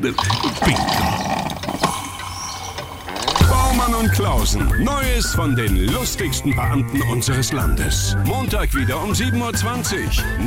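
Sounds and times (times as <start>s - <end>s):
speech: 0.0s - 1.4s, 3.7s - 10.4s
coffee being poured: 0.0s - 3.4s.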